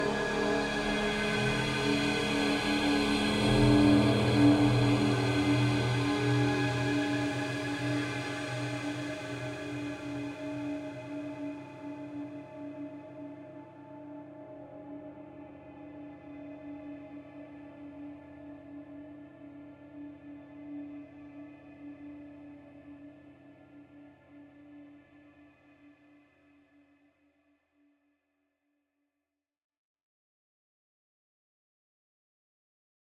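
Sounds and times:
evolving guitar swell: 0.0s - 10.5s
cinematic drones: 0.0s - 11.9s.

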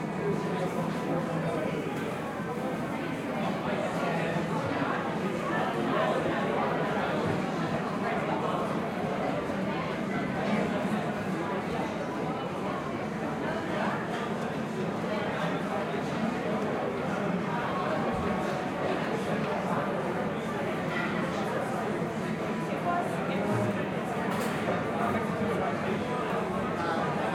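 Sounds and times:
busy large restaurant interior ambience: 0.0s - 27.3s.

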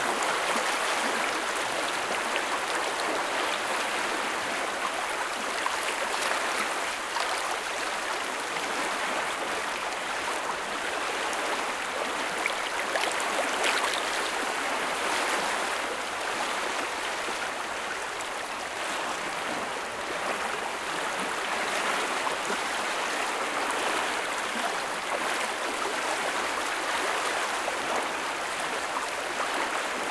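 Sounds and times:
waves on river: 0.0s - 30.1s.

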